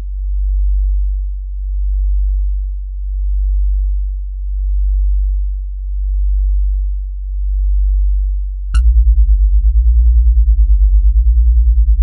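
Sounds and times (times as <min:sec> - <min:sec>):
slow bassy bass: 0:00.0 - 0:12.0.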